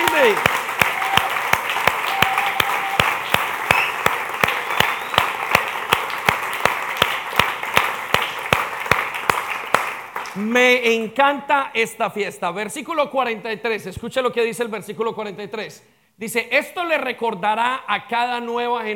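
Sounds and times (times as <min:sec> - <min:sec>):
audience applause: 0:00.0 - 0:10.4
speech: 0:00.2 - 0:00.6, 0:10.4 - 0:18.9.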